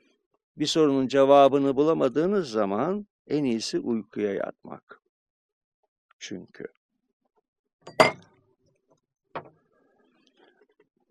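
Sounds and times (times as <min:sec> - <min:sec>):
speech: 0:00.6 - 0:05.0, 0:06.2 - 0:06.8, 0:07.9 - 0:08.2
drinking glass knocked over: 0:07.9 - 0:08.2.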